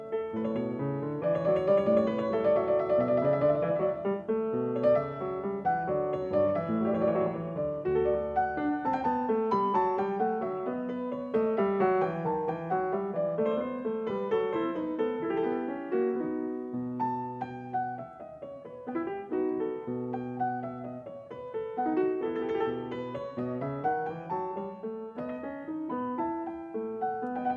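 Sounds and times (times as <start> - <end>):
courante piano piece: 0.0 - 27.5.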